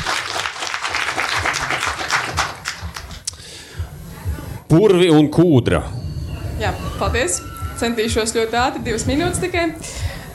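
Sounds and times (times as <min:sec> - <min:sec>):
audience applause: 0:00.0 - 0:03.2
faint voices murmuring: 0:03.9 - 0:10.3
speech: 0:04.7 - 0:06.0, 0:06.6 - 0:10.3.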